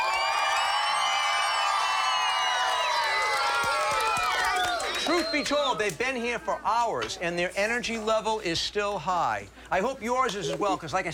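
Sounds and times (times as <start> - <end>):
studio audience cheering: 0.0 - 6.0
speech: 5.1 - 11.1.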